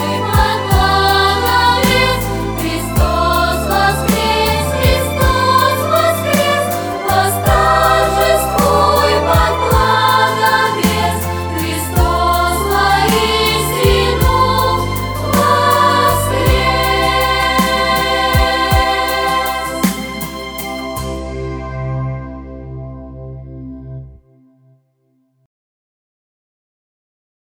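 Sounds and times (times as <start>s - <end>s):
choir singing: 0.0s - 21.6s.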